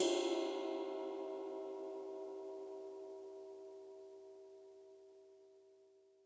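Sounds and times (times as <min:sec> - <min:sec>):
ride cymbal: 0:00.0 - 0:02.2.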